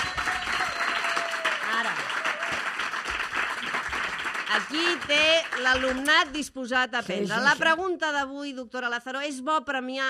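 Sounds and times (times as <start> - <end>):
person whooping: 0.0 - 2.6
audience applause: 0.0 - 6.1
speech: 4.6 - 10.0.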